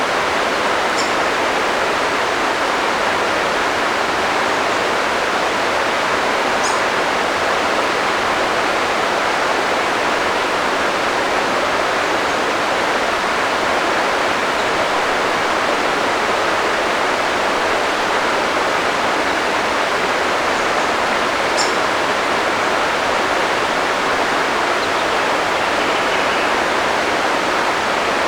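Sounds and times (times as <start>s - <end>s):
creek water in a forest: 0.0s - 28.2s.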